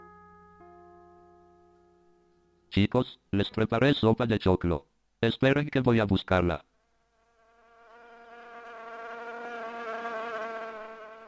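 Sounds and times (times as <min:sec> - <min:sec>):
speech: 0:02.8 - 0:06.7
housefly buzzing: 0:07.0 - 0:11.2.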